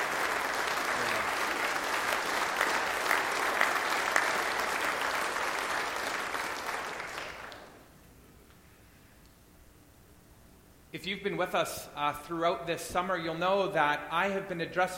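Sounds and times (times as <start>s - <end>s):
audience applause: 0.0s - 7.8s
speech: 11.0s - 14.9s.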